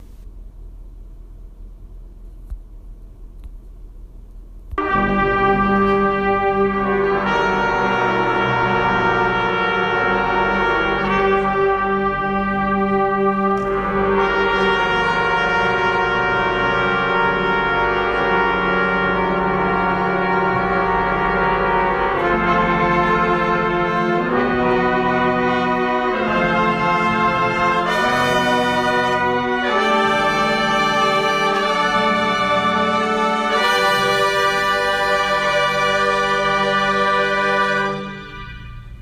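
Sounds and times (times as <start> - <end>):
chord progression: 4.8 - 39.0.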